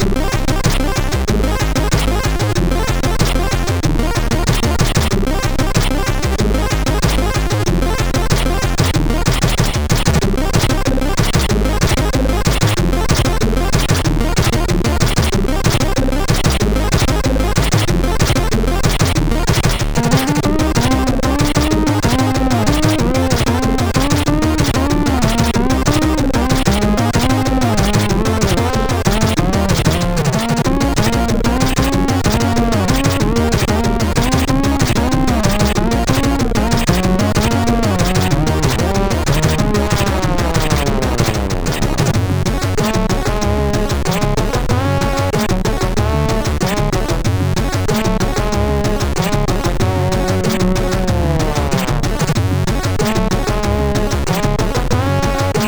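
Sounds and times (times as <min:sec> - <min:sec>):
MOS6581R4 SID chip music: 0:00.0 - 0:55.6.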